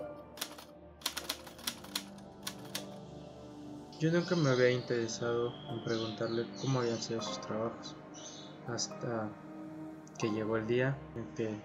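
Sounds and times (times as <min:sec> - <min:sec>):
typewriter typing: 0:00.4 - 0:03.0
speech: 0:04.0 - 0:08.0, 0:08.7 - 0:09.4, 0:10.2 - 0:11.6.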